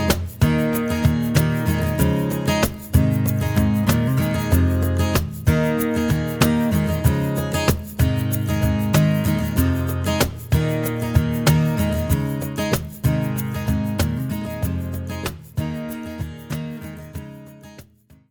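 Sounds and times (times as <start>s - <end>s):
cajon playing in A flat major: 0.0s - 18.0s.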